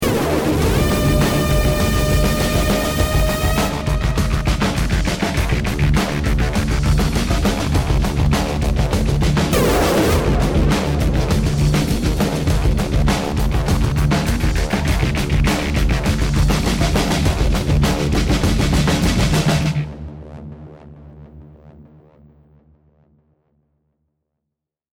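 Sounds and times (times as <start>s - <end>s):
action music: 0.0s - 21.6s.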